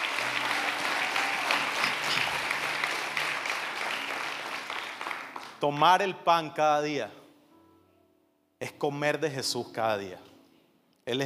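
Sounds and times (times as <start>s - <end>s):
audience applause: 0.0s - 5.6s
speech: 5.6s - 7.2s, 8.8s - 10.3s, 11.1s - 11.2s.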